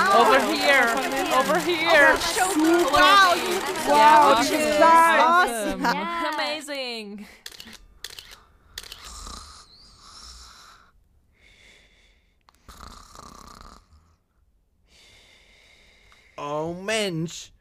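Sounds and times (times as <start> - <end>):
laughter: 0.0 - 6.6
speech: 0.4 - 7.4, 16.4 - 17.5
woman snoring in her sleep: 9.0 - 10.9, 12.6 - 14.2.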